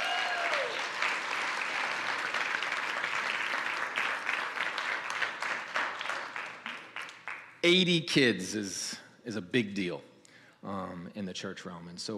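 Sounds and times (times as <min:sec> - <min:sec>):
audience round of applause: 0:00.0 - 0:07.5
speech: 0:07.6 - 0:12.1.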